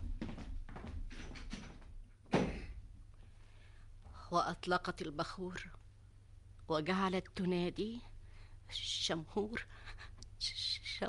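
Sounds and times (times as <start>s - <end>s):
soft bumps and shuffling movements: 0.0s - 2.7s
door closing: 2.3s - 2.8s
speech: 4.3s - 5.8s, 6.7s - 8.1s, 8.7s - 11.0s.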